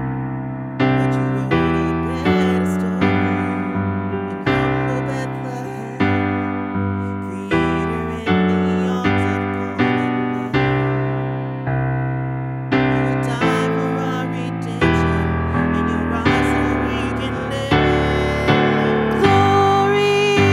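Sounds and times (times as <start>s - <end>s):
soprano with lead: 0.0s - 20.5s
christmas choir singing: 17.6s - 20.5s.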